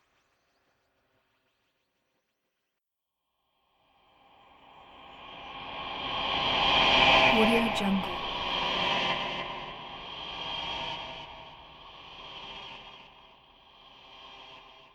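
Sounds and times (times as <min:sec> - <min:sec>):
unearthly sci-fi atmosphere: 0:05.8 - 0:11.6.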